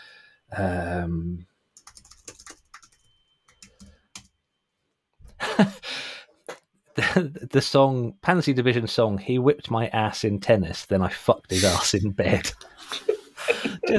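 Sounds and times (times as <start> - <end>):
speech: 0.5 - 1.5, 7.1 - 13.1
computer keyboard typing: 1.8 - 4.3
laughter: 5.4 - 5.8, 11.5 - 13.9.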